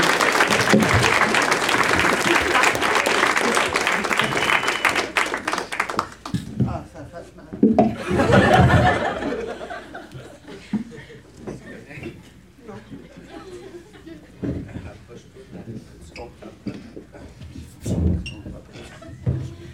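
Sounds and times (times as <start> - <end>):
crowd cheering: 0.0 - 6.3, 8.0 - 10.1
crowd applauding: 0.0 - 6.5
laughter: 7.2 - 15.1, 18.7 - 19.7.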